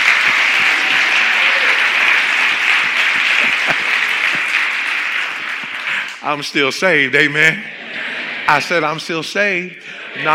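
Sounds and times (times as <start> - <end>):
laughter: 0.0 - 6.5, 7.2 - 10.3
audience clapping: 0.0 - 6.7
speech: 6.3 - 7.8, 8.5 - 10.3.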